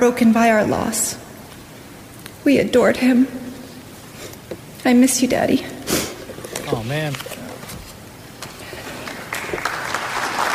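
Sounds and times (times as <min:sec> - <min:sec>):
speech: 0:00.0 - 0:01.3, 0:02.4 - 0:03.5, 0:04.8 - 0:05.8, 0:06.7 - 0:07.4
audience applause: 0:08.8 - 0:10.5.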